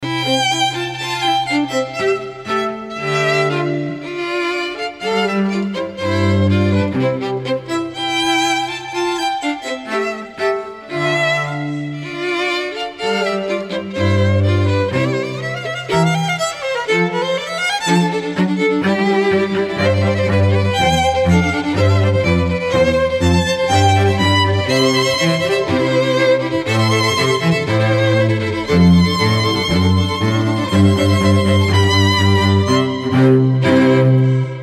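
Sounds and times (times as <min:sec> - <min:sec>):
string trio playing: 0:00.0 - 0:34.6.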